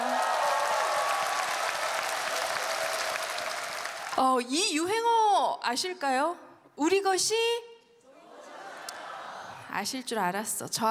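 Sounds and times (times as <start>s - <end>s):
audience applause: 0.0s - 4.2s
speech: 4.2s - 7.7s, 9.8s - 10.8s.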